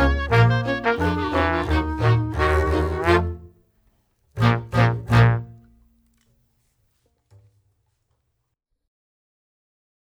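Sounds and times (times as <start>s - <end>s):
backing track: 0.0s - 3.5s, 4.4s - 5.6s.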